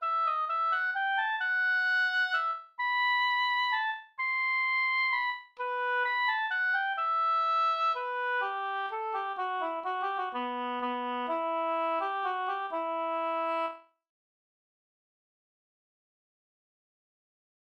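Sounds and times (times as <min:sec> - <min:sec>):
waltz music: 0:00.0 - 0:13.8.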